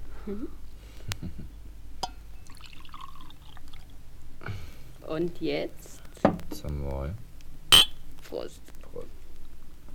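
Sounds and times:
speech: 0.3 - 1.2, 5.1 - 5.9, 6.6 - 7.3, 8.3 - 9.1
drink pouring into a glass: 2.4 - 3.9.

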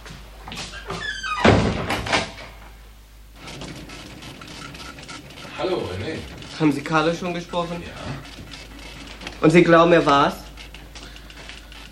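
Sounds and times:
door shut in a German detective radio play: 1.4 - 2.4
speech: 5.6 - 8.3, 9.4 - 10.4.

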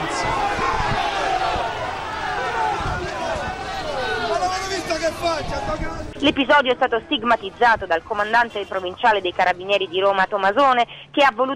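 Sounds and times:
angry crowd shouting outside police barracks: 0.0 - 7.2
speech: 5.3 - 11.5.

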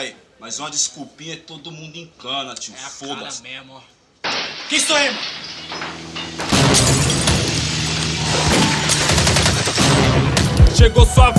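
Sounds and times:
speech: 0.0 - 7.0, 10.8 - 11.3
loud rapid burst of gunfire: 6.4 - 10.6.

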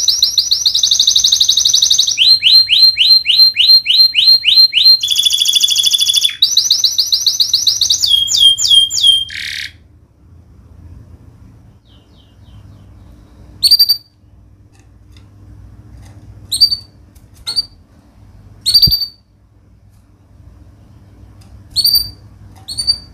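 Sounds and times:
canary singing a fast varied song: 0.0 - 9.9, 11.7 - 14.4, 16.4 - 17.8, 18.6 - 19.4, 20.8 - 23.1.

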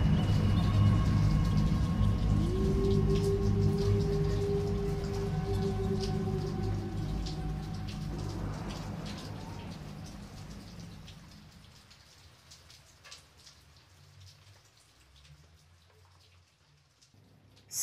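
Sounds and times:
low sustained droning hum: 0.0 - 11.8
steady rain pattering: 0.0 - 17.8
wind: 0.0 - 17.8.

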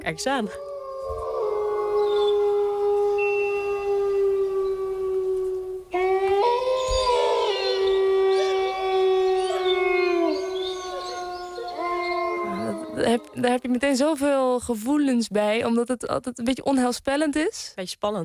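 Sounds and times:
speech: 0.0 - 1.2, 13.4 - 18.2
wolf howling: 0.0 - 13.9.

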